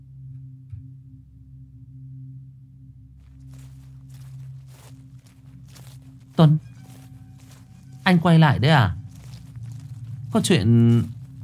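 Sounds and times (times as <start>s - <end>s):
footsteps outside: 3.2s - 11.4s
speech: 6.4s - 6.6s, 8.1s - 9.0s, 10.3s - 11.2s.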